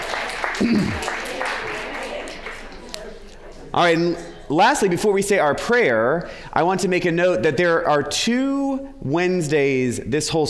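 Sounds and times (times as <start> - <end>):
audience clapping: 0.0 - 3.3
speech: 0.6 - 1.2, 3.7 - 10.4.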